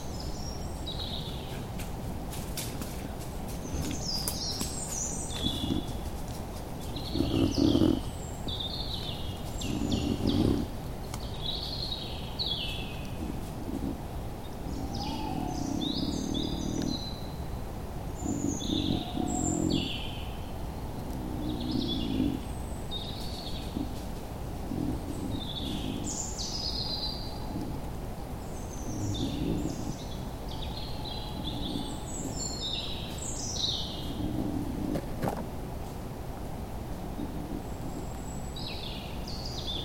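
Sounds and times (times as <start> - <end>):
birds chirping and whistling: 0.0 - 36.0, 36.6 - 39.8
rain hiss: 0.0 - 39.8
wild boar grunting: 3.7 - 10.9, 12.5 - 35.4, 36.9 - 39.0.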